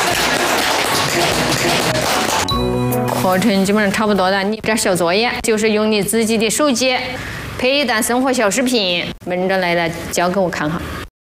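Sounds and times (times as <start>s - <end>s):
hand clapping: 0.0s - 2.6s
speech: 3.3s - 11.0s.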